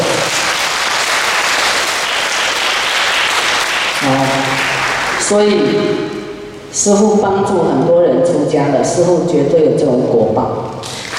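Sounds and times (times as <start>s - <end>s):
audience clapping hands: 0.0s - 5.5s, 10.8s - 11.1s
speech: 5.3s - 6.2s, 6.8s - 10.9s.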